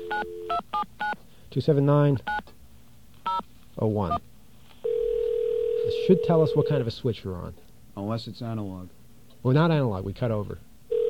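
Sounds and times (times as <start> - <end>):
speech: 0.2 - 2.5, 3.8 - 4.3, 5.9 - 10.7
touch-tone telephone dialing: 4.9 - 5.9.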